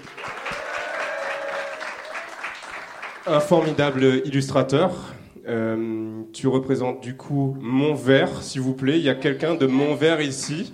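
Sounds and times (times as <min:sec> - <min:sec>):
crowd applauding: 0:00.0 - 0:04.2, 0:09.6 - 0:10.7
whoops and cheers: 0:00.3 - 0:02.6
speech: 0:03.3 - 0:10.7.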